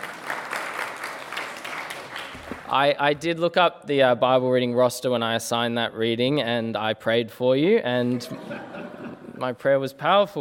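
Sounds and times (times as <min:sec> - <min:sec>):
applause: 0:00.0 - 0:02.8
speech: 0:02.7 - 0:08.8, 0:09.4 - 0:10.3
laughter: 0:07.9 - 0:09.6.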